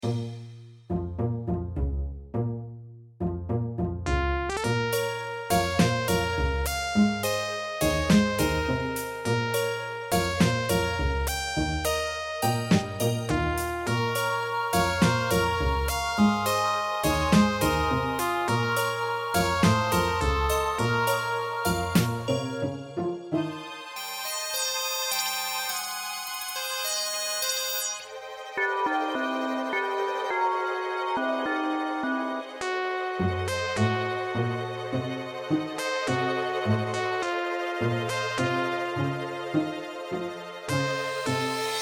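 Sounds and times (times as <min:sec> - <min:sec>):
suspense music: 0:00.0 - 0:41.8.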